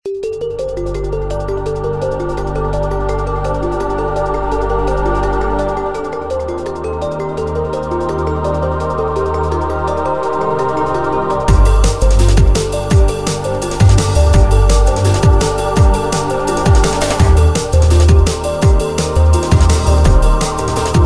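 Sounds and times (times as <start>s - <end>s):
ambience: 0.8s - 21.0s.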